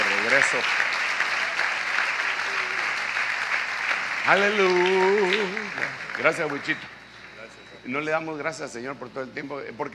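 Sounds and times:
audience applause: 0.0 - 7.0
speech: 0.4 - 0.9, 4.3 - 7.0, 7.8 - 9.9.

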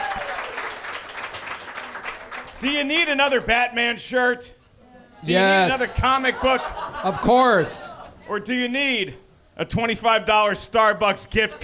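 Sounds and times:
crowd clapping: 0.0 - 3.5
speech: 2.6 - 4.6, 5.2 - 11.6
laughter: 5.4 - 8.5, 11.3 - 11.6.

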